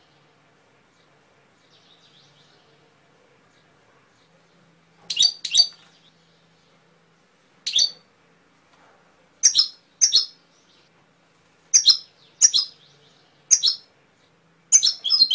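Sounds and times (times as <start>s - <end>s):
canary singing trilled phrases: 5.1s - 6.0s, 7.6s - 8.1s, 9.4s - 10.4s, 11.7s - 13.9s, 14.7s - 15.3s.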